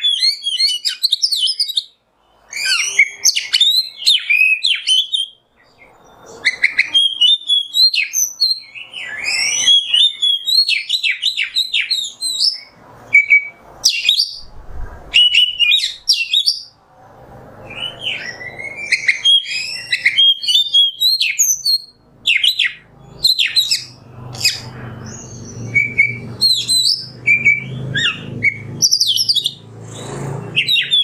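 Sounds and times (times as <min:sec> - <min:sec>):
Oriental magpie-robin singing: 0:00.0 - 0:16.8, 0:17.6 - 0:31.0
low hum: 0:14.4 - 0:16.1.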